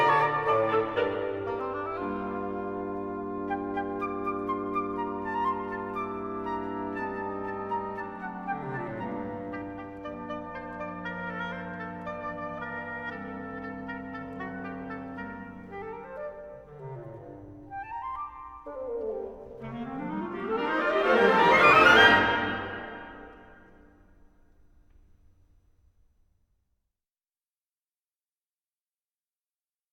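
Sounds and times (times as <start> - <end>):
woodwinds playing carols: 0.0 - 23.9.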